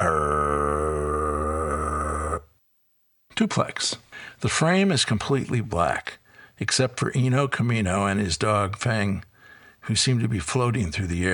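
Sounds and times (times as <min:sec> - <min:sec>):
voice imitating a chainsaw: 0:00.0 - 0:02.4
speech: 0:03.4 - 0:11.3.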